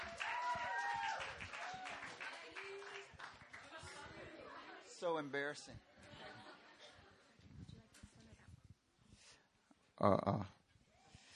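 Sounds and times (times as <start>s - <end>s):
high whistles or cheers: 0.0s - 2.1s
audience clapping: 0.0s - 4.5s
speech: 5.0s - 5.9s, 10.0s - 10.5s.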